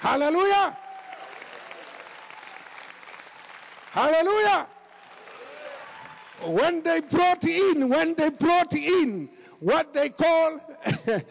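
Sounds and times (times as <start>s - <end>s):
speech: 0.0s - 0.8s, 4.0s - 4.7s, 6.4s - 11.2s
audience clapping: 0.0s - 7.7s.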